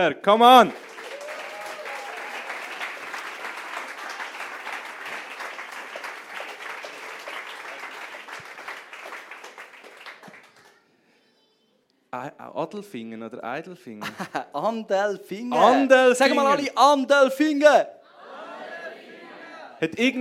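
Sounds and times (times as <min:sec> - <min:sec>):
speech: 0:00.0 - 0:00.8, 0:12.1 - 0:18.0, 0:19.8 - 0:20.1
warm audience applause: 0:00.3 - 0:10.8.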